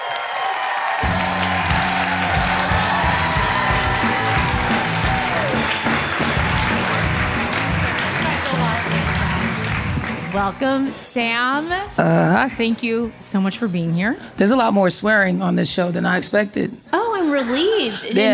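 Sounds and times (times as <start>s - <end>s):
TV talk show studio audience clapping and cheering: 0.0s - 11.1s
loud band music: 1.0s - 13.8s
speech: 10.4s - 18.3s.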